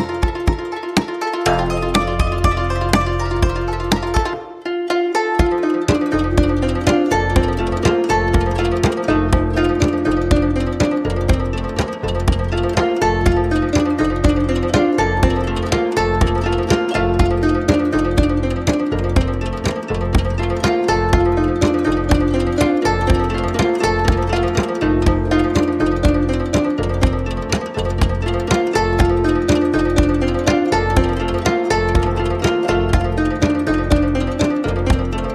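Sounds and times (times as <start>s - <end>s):
guzheng instrumental from China: 0.0s - 35.3s.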